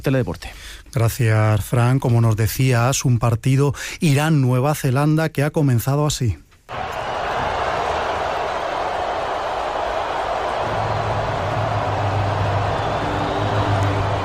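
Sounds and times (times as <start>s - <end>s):
speech: 0.0s - 6.4s
stadium crowd booing and whistling: 6.7s - 14.2s.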